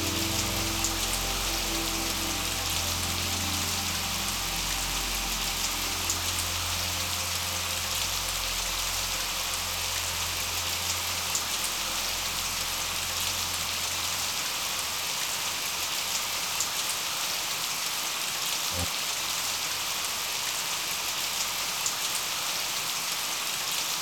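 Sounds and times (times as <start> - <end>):
music: 0.0 - 15.2
rain: 0.0 - 24.0.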